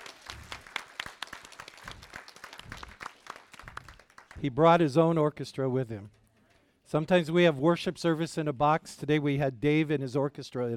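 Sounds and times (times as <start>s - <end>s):
audience applause: 0.0s - 4.4s
speech: 4.4s - 6.2s, 6.9s - 10.7s.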